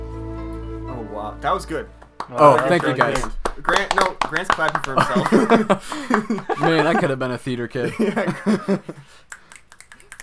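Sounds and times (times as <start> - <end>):
speech: 1.2 - 9.4
laughter: 4.6 - 9.1
finger snapping: 9.3 - 10.2.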